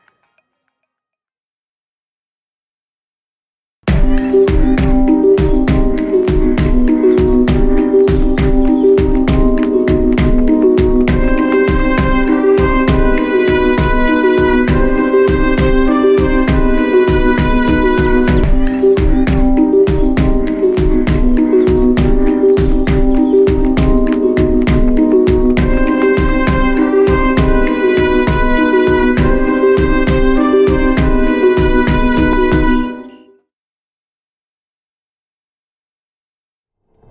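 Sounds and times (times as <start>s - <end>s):
angry running background music: 3.9s - 33.1s.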